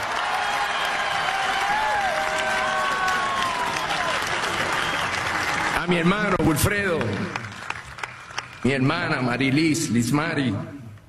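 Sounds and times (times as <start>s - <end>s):
audience applause: 0.0s - 8.8s
speech: 5.9s - 7.3s, 8.6s - 10.8s.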